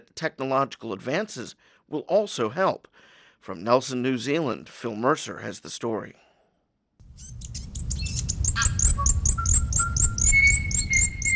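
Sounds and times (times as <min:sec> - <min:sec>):
speech: 0:00.1 - 0:06.2
native New Zealand birds chirping: 0:07.0 - 0:11.3.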